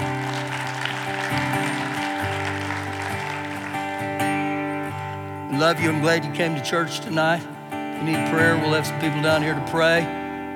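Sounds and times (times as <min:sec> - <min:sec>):
church audience clapping: 0:00.0 - 0:05.4
speech: 0:05.6 - 0:10.2.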